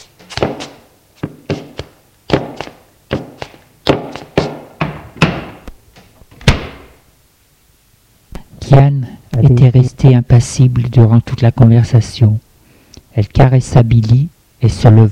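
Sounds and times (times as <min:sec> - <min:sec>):
door slamming shut: 0:04.8 - 0:05.6, 0:06.3 - 0:07.0
speech: 0:08.7 - 0:12.4, 0:13.2 - 0:15.1.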